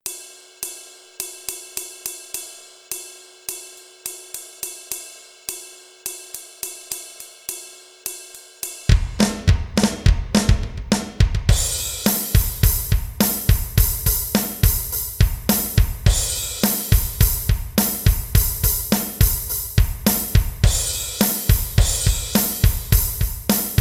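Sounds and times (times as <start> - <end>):
drum music: 8.6 - 23.7.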